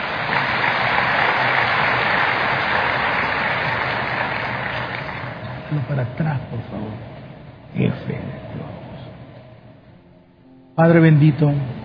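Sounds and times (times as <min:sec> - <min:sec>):
audience applause: 0:00.0 - 0:06.0
speech: 0:05.8 - 0:08.8, 0:10.8 - 0:11.8.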